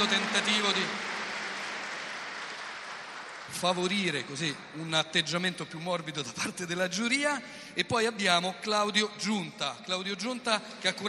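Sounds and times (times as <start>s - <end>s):
speech: 0.0s - 1.2s, 3.5s - 11.0s
audience applauding: 0.0s - 5.4s.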